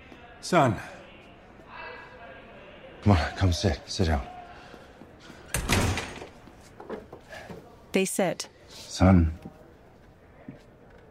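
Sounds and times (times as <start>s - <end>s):
speech: 0.4s - 0.9s, 3.0s - 4.3s, 7.9s - 9.5s
cell door opening: 5.5s - 7.0s.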